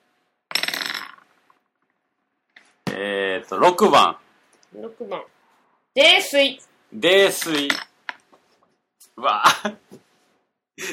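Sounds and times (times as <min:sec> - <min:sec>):
dice being rolled: 0:00.5 - 0:01.6
speech: 0:03.0 - 0:05.4, 0:06.0 - 0:07.9, 0:09.2 - 0:10.0, 0:10.8 - 0:10.9.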